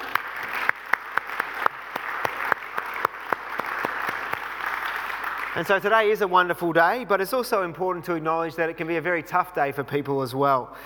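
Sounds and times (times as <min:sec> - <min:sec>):
audience applause: 0:00.0 - 0:05.9
speech: 0:05.6 - 0:10.8.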